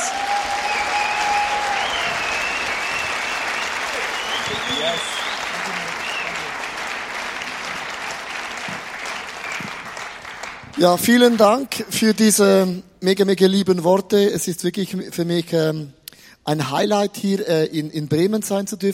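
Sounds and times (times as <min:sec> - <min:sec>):
audience applause: 0:00.0 - 0:11.3
speech: 0:10.8 - 0:18.9.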